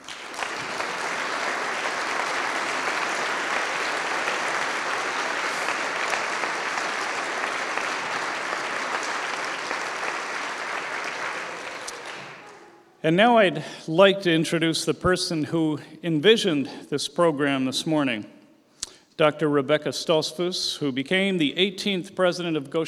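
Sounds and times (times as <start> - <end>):
audience applause: 0.0 - 12.8
speech: 13.0 - 18.4, 19.2 - 22.8.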